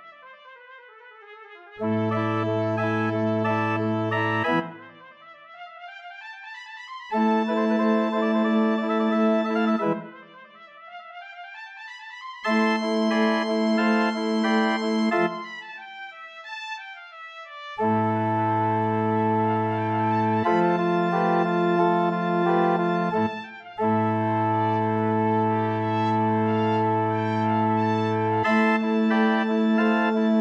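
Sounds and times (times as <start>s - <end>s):
vivace trumpet solo: 1.7s - 5.6s, 7.1s - 10.8s, 12.4s - 16.0s, 17.7s - 30.3s
organ: 1.9s - 4.6s, 7.2s - 10.0s, 12.5s - 15.5s, 18.4s - 23.4s, 24.4s - 30.3s.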